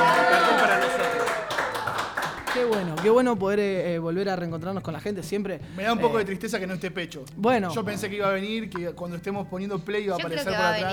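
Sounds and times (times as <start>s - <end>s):
studio audience clapping: 0.0s - 3.3s
speech: 2.8s - 10.9s.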